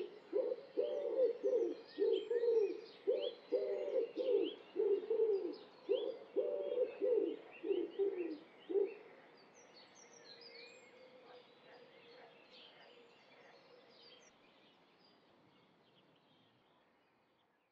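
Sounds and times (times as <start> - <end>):
Columba palumbus wood pigeon: 0.0 - 9.1.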